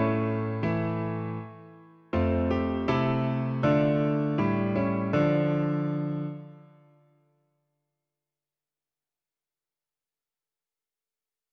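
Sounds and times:
piano version: 0.0 - 6.9.

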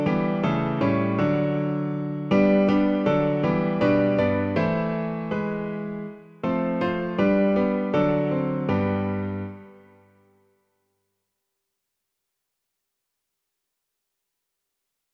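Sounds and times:
piano: 0.0 - 10.7.

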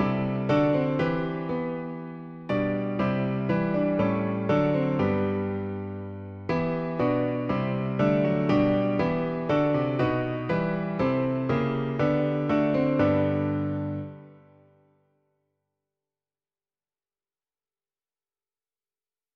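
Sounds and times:
piano: 0.0 - 15.3.

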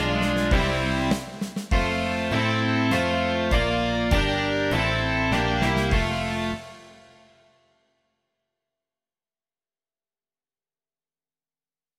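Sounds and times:
rock music: 0.0 - 7.3.

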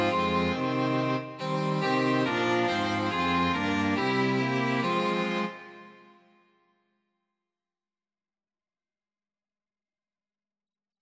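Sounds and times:
string quartet: 0.0 - 6.0.

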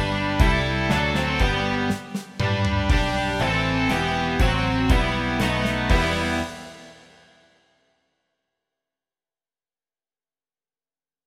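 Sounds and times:
rock music: 0.0 - 7.4.

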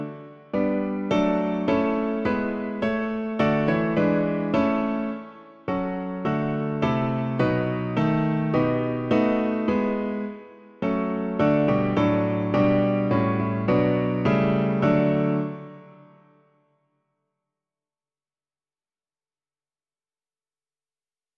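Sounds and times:
piano: 0.0 - 16.9.

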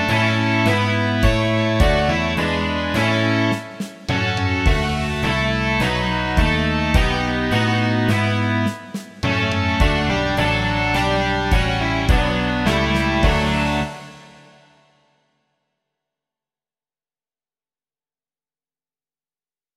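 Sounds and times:
rock music: 0.0 - 14.8.

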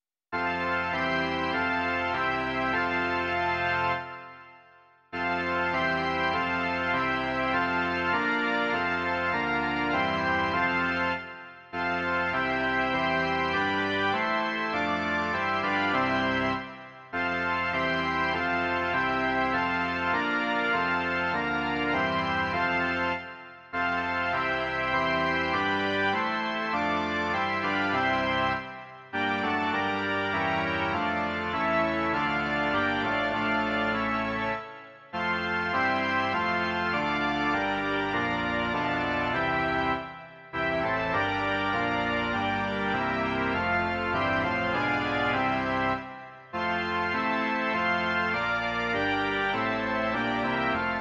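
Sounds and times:
organ: 0.0 - 50.9.

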